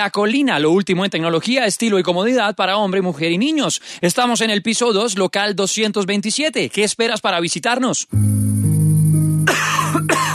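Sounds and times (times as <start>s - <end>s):
speech: 0.0s - 8.6s
person coughing: 9.5s - 10.3s.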